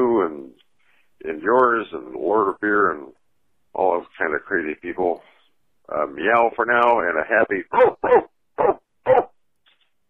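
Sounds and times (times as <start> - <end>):
speech: 1.4 - 3.2, 3.8 - 5.3, 5.9 - 9.2
dog vocalizing: 7.7 - 9.3.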